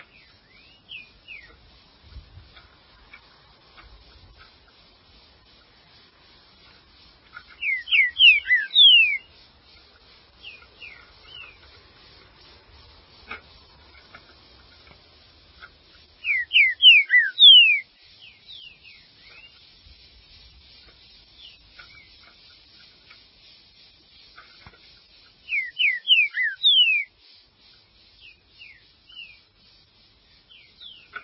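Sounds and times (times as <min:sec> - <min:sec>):
green-winged saltator singing falling whistles: 0:00.2 - 0:01.5, 0:07.6 - 0:09.3, 0:16.2 - 0:19.5, 0:25.5 - 0:27.1.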